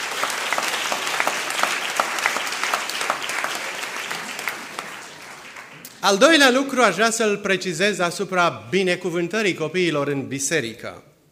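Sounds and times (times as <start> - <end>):
audience applause: 0.0 - 6.0
speech: 6.0 - 11.1.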